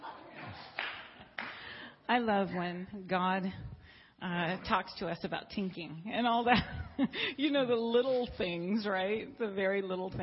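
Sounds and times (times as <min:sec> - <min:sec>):
hand claps: 0:00.5 - 0:01.8
speech: 0:02.1 - 0:10.2.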